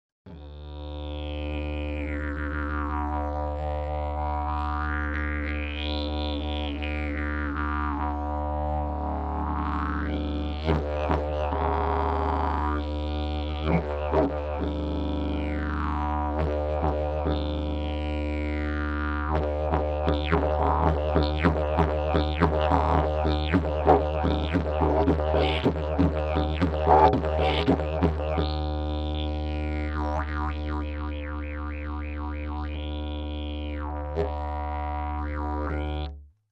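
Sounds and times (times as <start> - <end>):
didgeridoo: 0.3 - 36.3.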